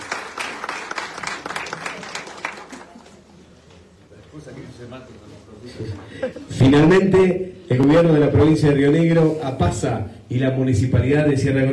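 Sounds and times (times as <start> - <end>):
loud applause from audience: 0.0 - 3.3
speech: 4.4 - 11.7.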